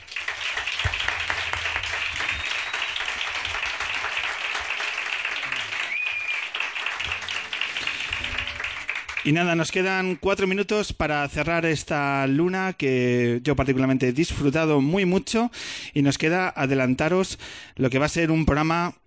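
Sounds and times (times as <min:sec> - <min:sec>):
audience applause: 0:00.0 - 0:09.7
speech: 0:09.2 - 0:19.0.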